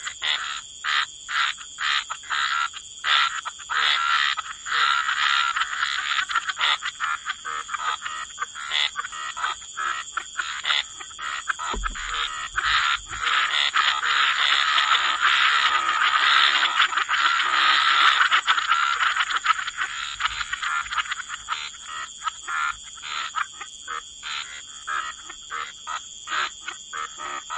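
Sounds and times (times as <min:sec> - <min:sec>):
frog chorus croaking: 0:00.0 - 0:27.5
low thump: 0:11.7 - 0:13.6.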